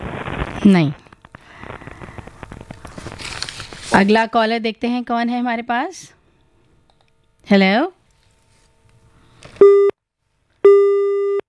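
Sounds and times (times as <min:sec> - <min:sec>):
speech: 0:00.6 - 0:01.0, 0:03.9 - 0:06.2, 0:07.5 - 0:08.0
telephone busy tone after a disconnected call: 0:10.7 - 0:11.4.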